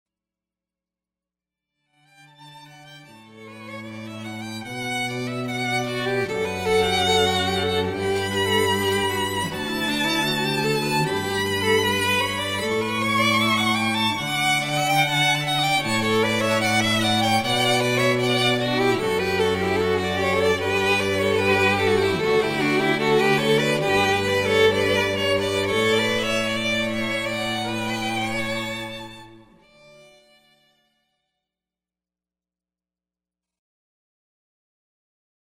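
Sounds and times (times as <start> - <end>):
string trio: 2.1 - 30.7.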